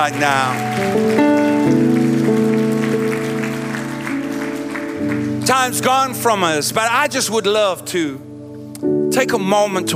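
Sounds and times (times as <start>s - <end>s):
speech: 0.0s - 1.9s, 5.4s - 9.9s
audience clapping: 0.0s - 6.4s.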